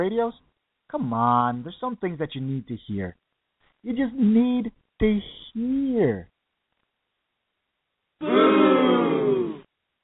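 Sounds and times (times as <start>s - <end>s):
speech: 0.0s - 3.2s, 3.8s - 6.3s, 8.2s - 9.4s
crowd booing in disapproval: 8.2s - 9.7s.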